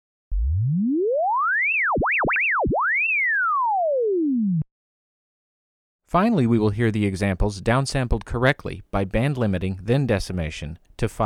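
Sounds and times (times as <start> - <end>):
swept sine wave test tone: 0.3 - 4.7
speech: 6.1 - 11.2.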